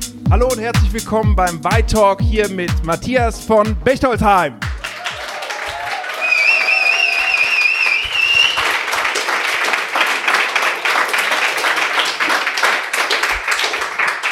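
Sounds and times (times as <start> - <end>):
speech: 0.3 - 4.6
crowd clapping in a packed pop-up store in Berlin-Mitte: 4.6 - 14.3.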